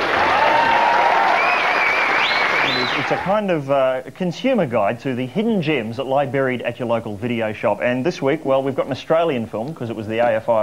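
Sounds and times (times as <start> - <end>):
studio audience applause on a film-review television show: 0.0 - 3.4
speech: 3.1 - 10.6.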